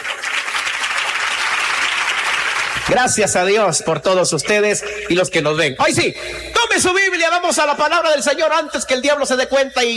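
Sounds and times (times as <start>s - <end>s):
church congregation applauding: 0.0s - 3.4s
speech: 2.8s - 9.9s.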